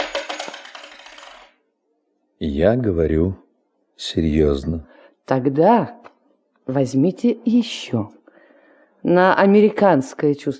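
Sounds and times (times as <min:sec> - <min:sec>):
coin dropped as a donation clinking and spinning: 0:00.0 - 0:01.6
speech: 0:02.4 - 0:03.4, 0:04.0 - 0:06.0, 0:06.7 - 0:08.2, 0:09.0 - 0:10.5.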